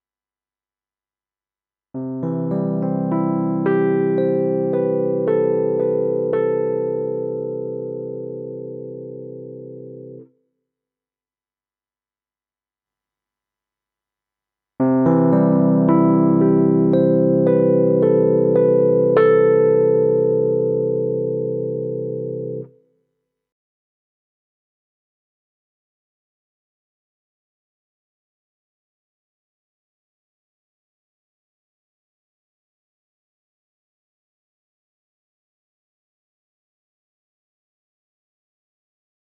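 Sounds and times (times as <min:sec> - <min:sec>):
electric piano: 0:02.0 - 0:10.2, 0:14.8 - 0:22.7.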